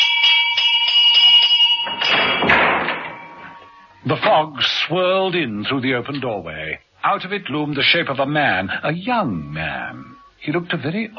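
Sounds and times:
front doorbell ringing: 0:00.0 - 0:02.3, 0:03.0 - 0:04.1
speech: 0:04.0 - 0:11.1.

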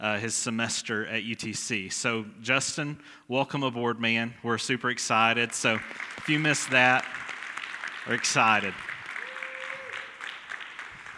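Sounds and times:
speech: 0:00.0 - 0:07.2, 0:08.0 - 0:08.9
Baptist church congregation applauding: 0:05.4 - 0:11.1
woo cheer: 0:07.0 - 0:11.1.

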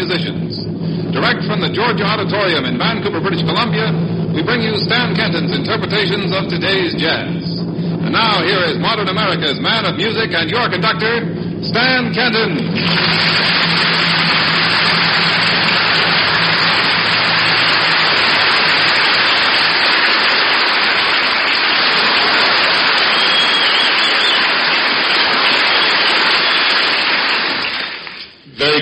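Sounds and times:
speech: 0:00.1 - 0:07.5, 0:08.1 - 0:14.2
audience applause: 0:12.7 - 0:28.8.

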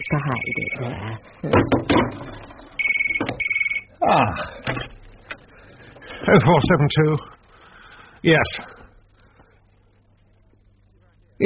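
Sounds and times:
telephone ringing with a fast warbling electronic trill: 0:00.0 - 0:00.9, 0:02.8 - 0:03.9
speech: 0:00.1 - 0:02.4, 0:04.1 - 0:04.9, 0:06.3 - 0:07.3, 0:08.2 - 0:08.8.

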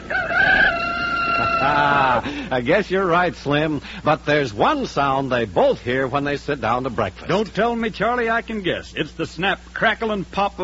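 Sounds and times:
rooster crowing: 0:00.0 - 0:02.3
speech: 0:01.6 - 0:10.6.

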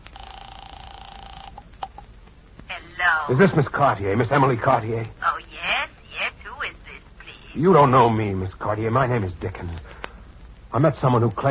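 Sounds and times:
telephone dial tone in a radio drama: 0:00.1 - 0:02.0
speech: 0:03.0 - 0:05.2, 0:07.6 - 0:10.0, 0:10.7 - 0:11.4.

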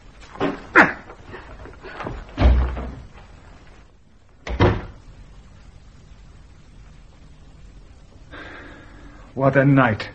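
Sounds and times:
heavy cell door slamming shut: 0:02.4 - 0:03.1, 0:04.5 - 0:05.0
speech: 0:09.4 - 0:10.1.

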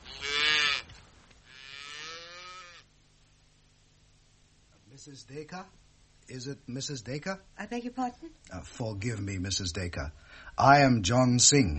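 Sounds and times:
cattle mooing: 0:00.0 - 0:00.9, 0:01.5 - 0:02.9
speech: 0:05.0 - 0:11.7.

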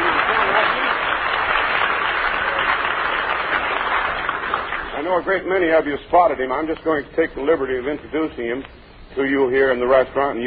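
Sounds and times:
audience applauding: 0:00.0 - 0:05.3
speech: 0:05.1 - 0:10.4.

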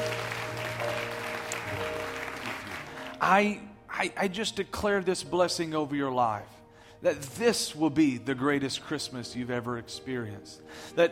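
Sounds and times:
audience clapping hands: 0:00.0 - 0:03.3
sustained organ-like musical tones: 0:00.0 - 0:03.8
speech: 0:03.2 - 0:11.1.

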